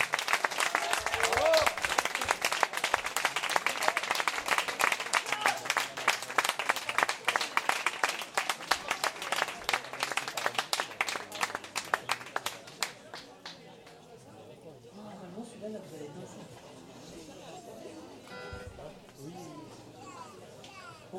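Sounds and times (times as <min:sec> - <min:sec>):
voices and cheers: 0:00.0 - 0:02.8, 0:03.6 - 0:05.9
crowd applause celebrating a victory: 0:00.0 - 0:13.9.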